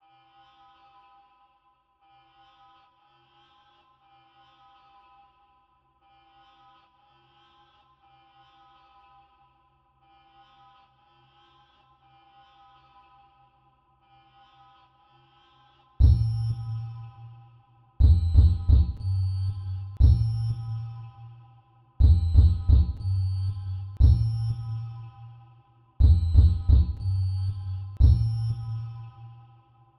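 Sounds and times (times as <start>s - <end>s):
sine wave tone: 16.0s - 29.8s.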